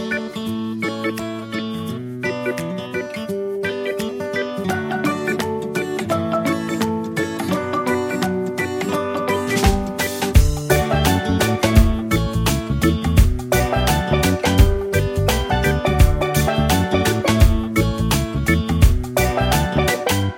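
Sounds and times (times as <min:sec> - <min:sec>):
reggae backing track: 0:00.0 - 0:20.3.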